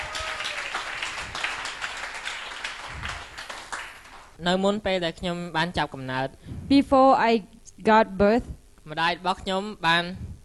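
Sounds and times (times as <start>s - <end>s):
audience applause: 0.0s - 4.4s
speech: 4.4s - 10.3s.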